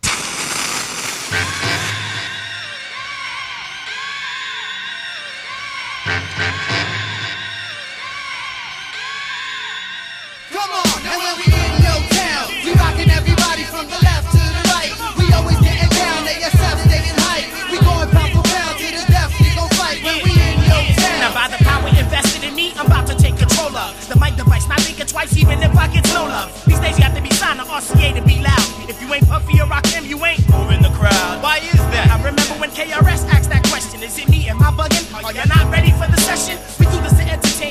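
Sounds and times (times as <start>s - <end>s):
trad hip hop song: 0.8s - 37.6s
loud steady thumping drum beat: 10.9s - 37.6s
speech: 24.8s - 37.1s.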